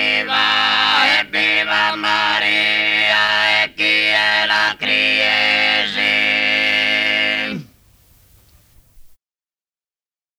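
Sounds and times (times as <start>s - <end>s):
a cuncordu and tenore polyphonic singing: 0.0s - 7.8s.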